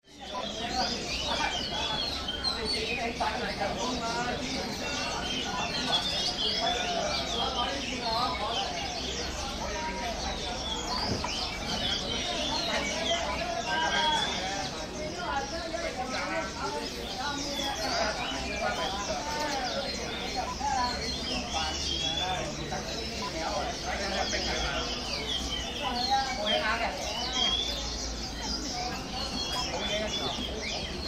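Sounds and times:
birds at Hong Kong bird market: 0.0s - 31.0s.

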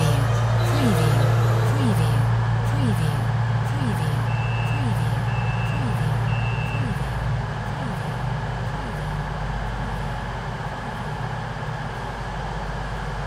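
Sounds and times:
crowd murmur at a train station: 0.0s - 7.2s
train engine at a train station: 0.0s - 13.2s.

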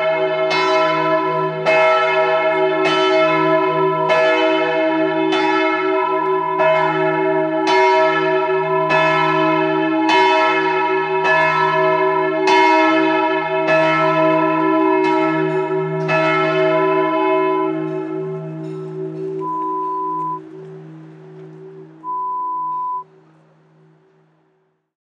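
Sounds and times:
church bell: 0.0s - 24.5s.

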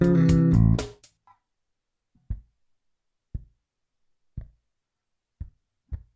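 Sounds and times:
fill lick in A minor: 0.0s - 1.1s.

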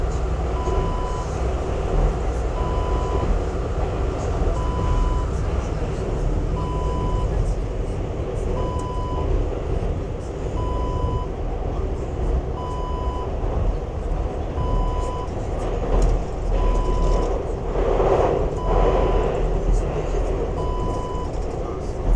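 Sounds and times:
train interior sounds: 0.0s - 22.1s.

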